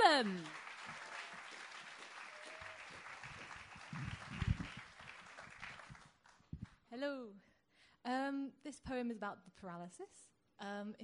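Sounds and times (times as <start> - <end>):
crowd applause: 0.0 - 6.4
speech: 0.2 - 0.6, 7.0 - 11.0.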